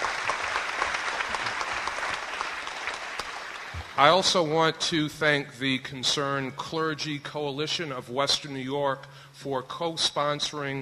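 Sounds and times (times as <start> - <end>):
audience applause: 0.0 - 4.2
speech: 4.0 - 10.8.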